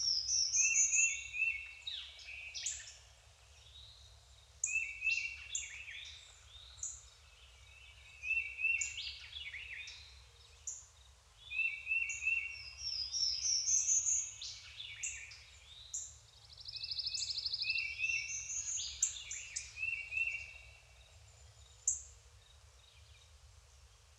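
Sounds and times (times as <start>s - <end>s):
overlapping songbirds singing: 0.0s - 24.1s.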